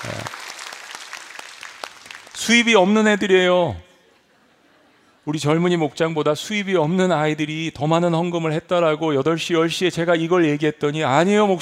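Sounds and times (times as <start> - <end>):
audience applause: 0.0 - 2.7
speech: 2.4 - 3.8, 5.3 - 11.5.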